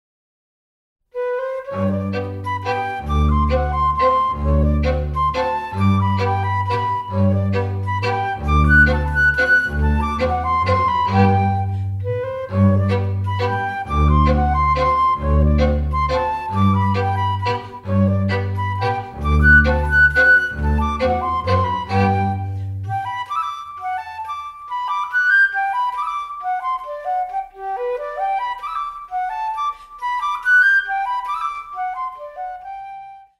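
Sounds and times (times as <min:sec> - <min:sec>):
flutes playing a Laendler folk dance: 0:01.2 - 0:33.3.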